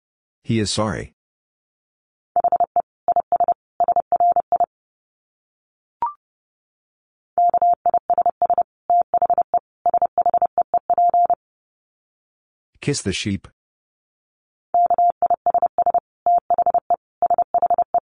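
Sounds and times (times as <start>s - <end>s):
speech: 0.4s - 1.2s, 12.8s - 13.6s
fast Morse code tones at 30 wpm: 2.4s - 4.7s, 7.4s - 11.4s, 14.8s - 18.0s.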